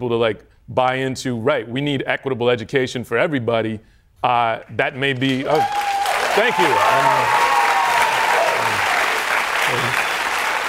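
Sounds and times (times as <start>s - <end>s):
speech: 0.0s - 7.5s, 9.7s - 10.0s
audience applause: 5.2s - 10.6s.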